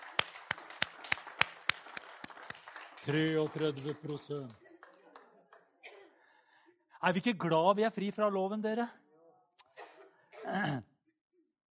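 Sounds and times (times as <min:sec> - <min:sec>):
person clapping hands: 0:00.0 - 0:05.7
speech: 0:03.0 - 0:04.6, 0:07.0 - 0:09.0, 0:10.5 - 0:10.9.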